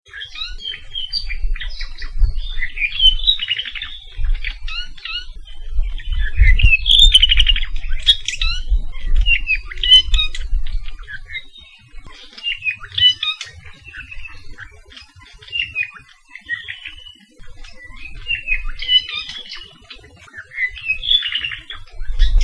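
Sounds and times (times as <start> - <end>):
apapane calls along Saddle Road in Hawaii: 0.1 - 22.4.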